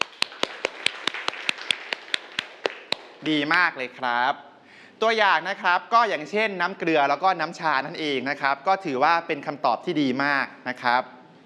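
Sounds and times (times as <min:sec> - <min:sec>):
students clapping: 0:00.0 - 0:03.3
speech: 0:03.2 - 0:11.2.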